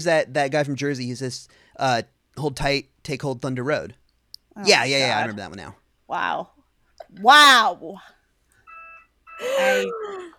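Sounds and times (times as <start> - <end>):
speech: 0.0 - 4.0, 4.6 - 8.1, 9.4 - 10.3
alarm sound effect: 8.7 - 9.8.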